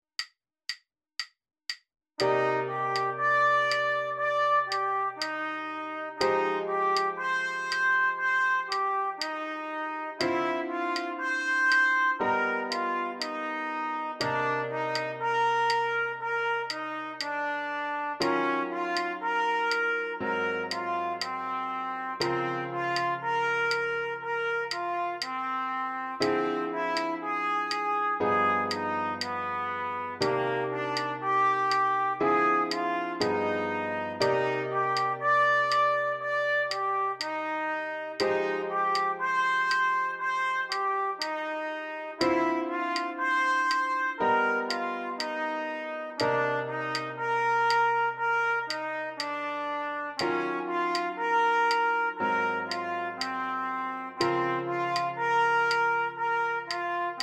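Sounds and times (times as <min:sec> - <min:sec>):
open-voiced chords with lots of tensions: 0:02.2 - 0:57.2.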